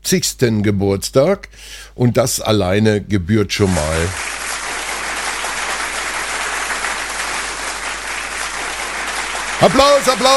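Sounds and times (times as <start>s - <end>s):
speech: 0.1s - 4.4s, 9.6s - 10.3s
applause: 3.7s - 10.3s.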